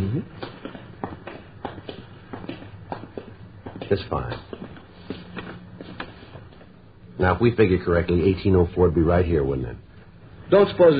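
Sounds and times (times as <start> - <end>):
footsteps of people walking down a residential street: 0.0 - 7.4
speech: 3.9 - 4.5, 7.2 - 9.8, 10.5 - 10.9.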